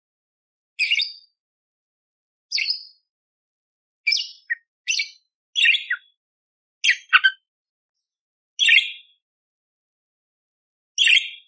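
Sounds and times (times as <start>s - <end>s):
budgerigar chattering: 4.1s - 6.1s, 6.8s - 7.4s, 8.6s - 9.0s.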